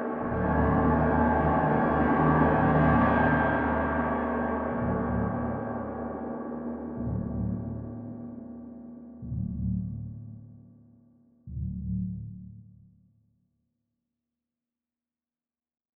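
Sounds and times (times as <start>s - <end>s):
ambient suspense music: 0.1s - 10.9s, 11.5s - 12.9s.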